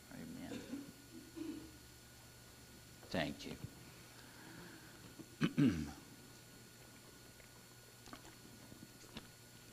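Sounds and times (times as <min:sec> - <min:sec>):
speech: 0:03.1 - 0:03.8, 0:05.6 - 0:06.0
person gulping a drink of water: 0:07.3 - 0:09.3.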